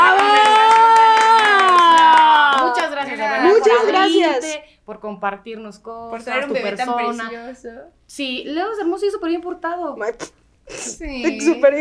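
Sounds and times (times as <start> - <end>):
rhythmic hand clapping: 0.0 - 3.1
speech: 4.1 - 11.7.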